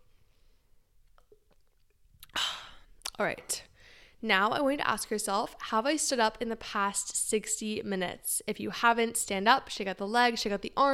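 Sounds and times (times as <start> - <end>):
person sipping water: 1.0 - 3.2
speech: 3.2 - 10.9.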